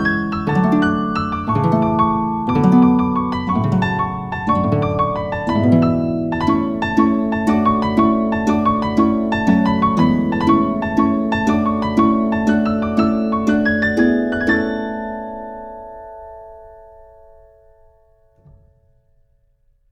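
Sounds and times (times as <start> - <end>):
jig instrumental: 0.0 - 15.7.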